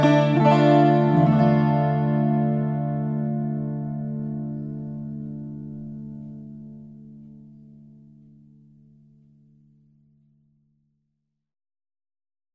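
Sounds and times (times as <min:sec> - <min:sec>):
12-string guitar: 0:00.0 - 0:09.1.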